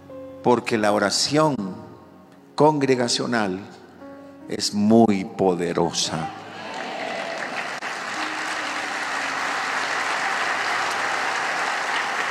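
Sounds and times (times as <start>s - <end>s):
speech: 0.4s - 1.8s, 2.6s - 3.8s, 4.5s - 6.4s
audience applauding: 6.5s - 12.2s.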